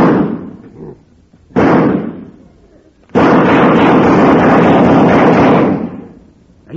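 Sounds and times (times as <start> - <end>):
comedy gunshot sound effect booms: 0.0 - 0.6, 1.5 - 2.4, 3.1 - 6.2.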